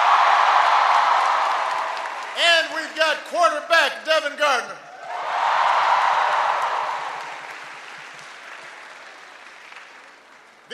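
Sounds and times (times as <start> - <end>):
audience applause: 0.0 - 3.0, 5.0 - 10.7
speech: 2.8 - 4.8.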